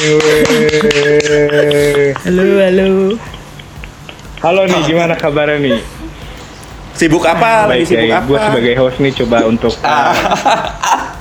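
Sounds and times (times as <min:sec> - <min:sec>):
several people hand clapping: 0:00.0 - 0:02.4
speech: 0:00.0 - 0:03.3, 0:04.4 - 0:06.0, 0:07.0 - 0:11.0
laughter: 0:00.0 - 0:06.4, 0:07.0 - 0:11.1
sustained tonal hum: 0:00.0 - 0:11.1.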